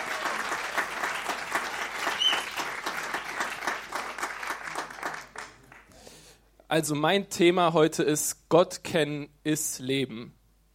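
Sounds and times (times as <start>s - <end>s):
audience applause: 0.0s - 5.9s
speech: 6.7s - 10.4s.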